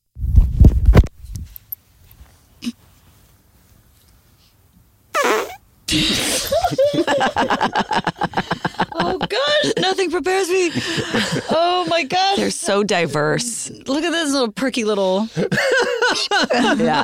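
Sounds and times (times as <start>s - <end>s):
recorded fart: 5.2s - 5.6s
laughter: 5.9s - 12.4s, 15.4s - 17.0s
speech: 7.2s - 8.3s, 9.3s - 17.0s.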